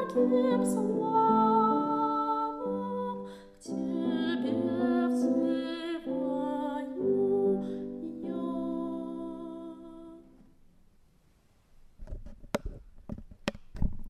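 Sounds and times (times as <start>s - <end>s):
soprano singing: 0.0s - 10.5s.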